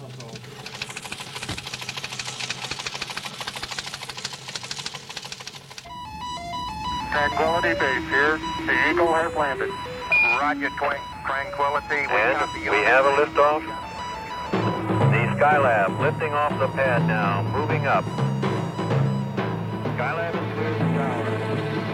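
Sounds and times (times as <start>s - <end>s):
telex transmission tones: 5.9s - 21.2s
speech: 7.1s - 13.8s, 15.4s - 18.3s.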